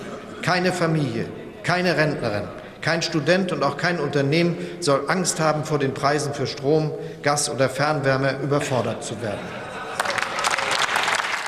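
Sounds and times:
laughter in parliament: 0:00.0 - 0:00.5, 0:09.3 - 0:10.7
speech: 0:00.4 - 0:09.7
parliament applause: 0:09.9 - 0:11.4.

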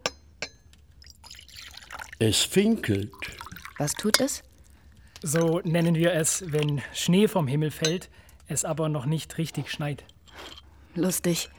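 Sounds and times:
china cup clinking: 0:00.0 - 0:11.5
tea pouring into a cup: 0:00.8 - 0:11.5
speech: 0:02.2 - 0:04.5, 0:05.2 - 0:11.5.

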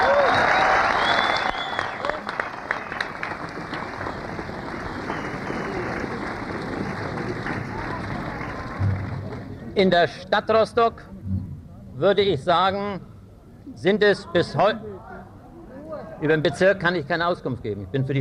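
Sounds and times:
audience applauding: 0:00.0 - 0:09.6
scattered voices and murmurs: 0:04.5 - 0:12.2, 0:13.0 - 0:18.2
speech: 0:09.8 - 0:11.2, 0:12.0 - 0:13.1, 0:13.7 - 0:14.9, 0:16.2 - 0:18.2.

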